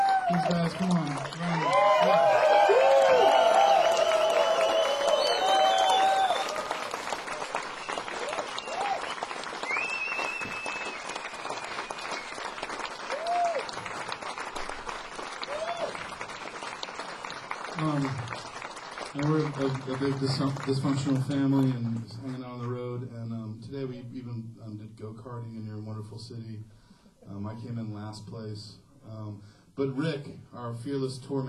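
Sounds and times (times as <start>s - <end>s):
audience applause for a band: 0.0s - 21.6s
speech: 0.3s - 2.8s, 19.9s - 22.4s, 25.1s - 31.4s.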